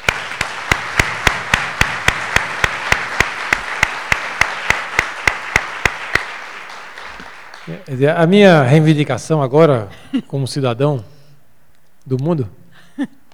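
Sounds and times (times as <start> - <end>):
audience applause: 0.0 - 8.1
speech: 7.7 - 11.1, 12.1 - 13.2.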